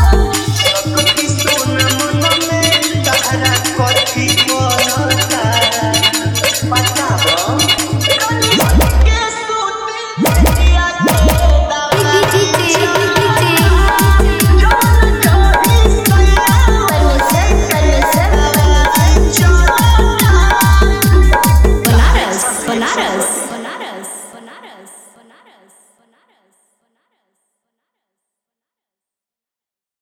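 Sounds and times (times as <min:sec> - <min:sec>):
Bhojpuri DJ remix music with full bass: 0:00.0 - 0:09.4, 0:10.2 - 0:23.6.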